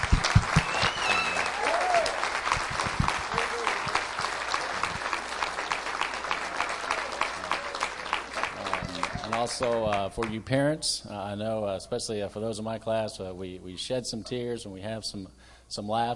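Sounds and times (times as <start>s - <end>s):
audience applause: 0.0s - 10.3s
speech: 9.4s - 16.1s.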